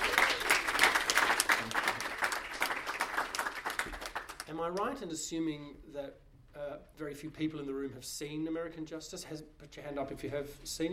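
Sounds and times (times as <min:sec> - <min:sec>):
audience applause welcoming a guest speaker at a live talk: 0:00.0 - 0:04.5
speech: 0:04.6 - 0:10.9.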